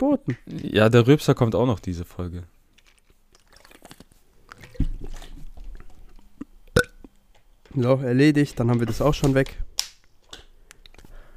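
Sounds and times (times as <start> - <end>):
speech: 0.0 - 2.6, 7.8 - 9.7
chewing and slurping jelly dessert: 2.7 - 7.2
gulp: 3.4 - 7.1.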